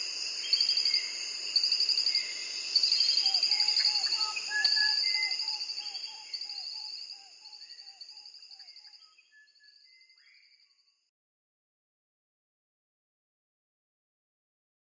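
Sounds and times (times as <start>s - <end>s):
birds: 0.0s - 10.7s.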